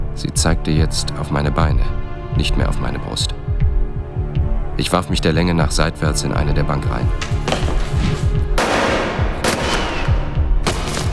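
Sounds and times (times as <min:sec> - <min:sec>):
speech: 0:00.2 - 0:03.4, 0:04.8 - 0:08.2
several gunshots fired: 0:08.6 - 0:11.1.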